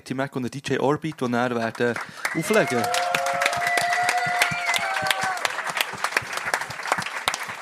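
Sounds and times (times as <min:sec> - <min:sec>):
speech: 0:00.1 - 0:03.1
crowd applause at live show: 0:01.6 - 0:07.6.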